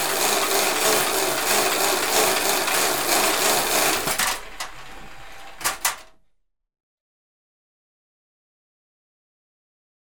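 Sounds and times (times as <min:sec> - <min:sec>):
cheap exercise bike with brake pad: 0:00.0 - 0:06.1.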